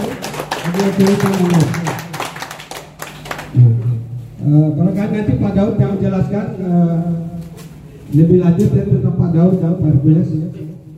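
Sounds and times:
audience applause: 0:00.0 - 0:03.6
speech: 0:00.7 - 0:01.9, 0:04.4 - 0:07.3, 0:08.1 - 0:10.9.

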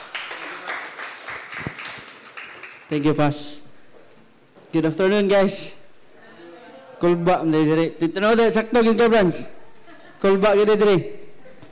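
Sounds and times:
crowd applauding: 0:00.0 - 0:03.1
speech: 0:02.9 - 0:03.6, 0:04.7 - 0:05.8, 0:07.0 - 0:09.6, 0:10.2 - 0:11.2.

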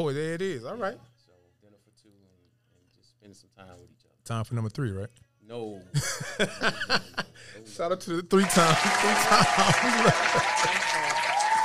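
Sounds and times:
speech: 0:00.0 - 0:01.1, 0:03.2 - 0:11.3
laughter: 0:06.0 - 0:07.6, 0:08.4 - 0:11.6
applause: 0:08.4 - 0:11.6.

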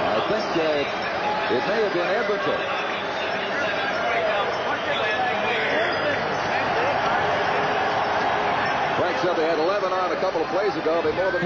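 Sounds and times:
crowd cheering in arena: 0:00.0 - 0:11.4
speech: 0:00.3 - 0:02.8, 0:09.2 - 0:11.4.

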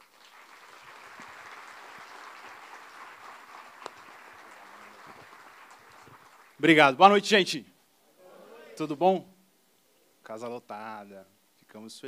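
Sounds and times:
crowd applause: 0:00.0 - 0:06.6
speech: 0:06.6 - 0:07.7, 0:08.8 - 0:09.3, 0:10.3 - 0:12.0.

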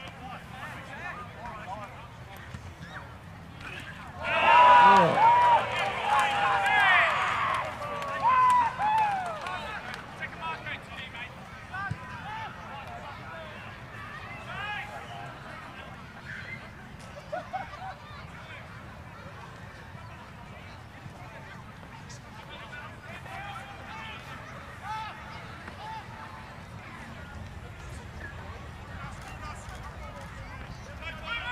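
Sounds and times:
crowd chatter at a Queensland Rugby League match at Bishop Park: 0:00.0 - 0:31.5
crowd shouting and excited voices: 0:04.2 - 0:09.8.

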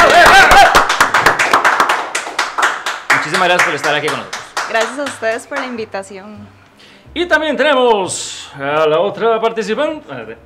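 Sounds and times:
loud applause: 0:00.0 - 0:05.3
speech: 0:03.4 - 0:10.4.

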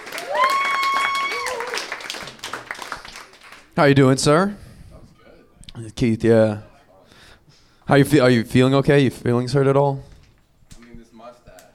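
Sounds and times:
round of applause: 0:00.0 - 0:03.8
speech: 0:03.8 - 0:04.6, 0:05.8 - 0:06.7, 0:07.9 - 0:10.1.

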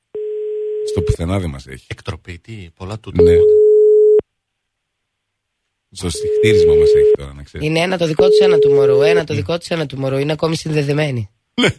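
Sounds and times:
telephone busy tone: 0:00.2 - 0:01.2, 0:03.2 - 0:04.2, 0:08.2 - 0:09.2
speech: 0:01.0 - 0:03.6, 0:05.9 - 0:11.7.

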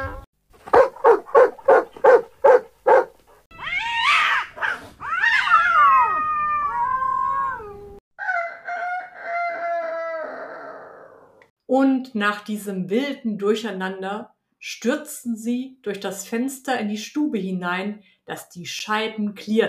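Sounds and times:
sharp barks or bray-like bursts: 0:00.6 - 0:03.2
cat meowing and yowling: 0:03.5 - 0:08.0
rooster crowing: 0:05.5 - 0:11.4
speech: 0:12.0 - 0:19.6.

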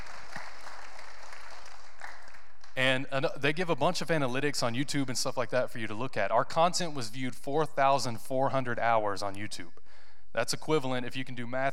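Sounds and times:
audience applause: 0:00.0 - 0:02.7
speech: 0:03.0 - 0:11.7.

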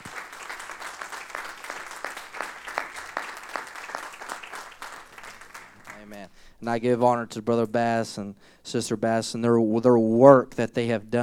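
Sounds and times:
audience clapping hands: 0:00.0 - 0:06.3
speech: 0:06.1 - 0:11.2.

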